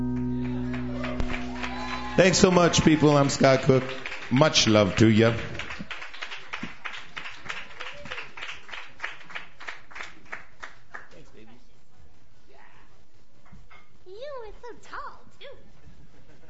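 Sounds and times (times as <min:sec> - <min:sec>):
audience clapping: 0:00.1 - 0:11.3
high rising whoops and cheers: 0:00.6 - 0:03.7, 0:07.8 - 0:08.4
speech: 0:02.2 - 0:05.5.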